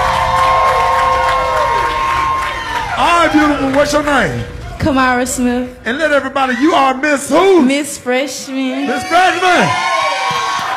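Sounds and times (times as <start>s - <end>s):
audience applauding and cheering: 0.0s - 4.8s, 8.9s - 10.7s
speech: 3.2s - 10.0s.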